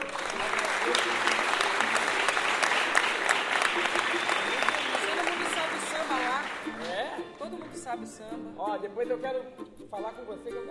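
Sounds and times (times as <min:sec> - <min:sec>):
audience applause: 0:00.0 - 0:07.2
speech: 0:08.0 - 0:10.6.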